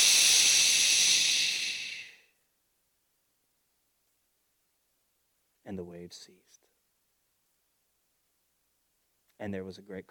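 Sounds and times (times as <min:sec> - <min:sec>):
person making a shushing sound: 0:00.0 - 0:02.2
speech: 0:05.7 - 0:06.6, 0:09.4 - 0:10.0.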